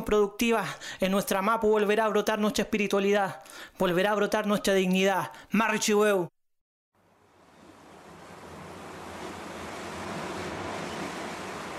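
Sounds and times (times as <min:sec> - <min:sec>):
speech: 0:00.1 - 0:06.4
ocean surf rushing and roaring: 0:07.3 - 0:11.7.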